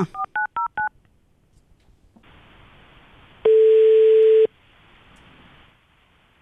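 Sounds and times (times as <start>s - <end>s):
soft hiss of telephone line noise: 1.0s - 6.3s
single steady telephone tone: 3.4s - 4.5s.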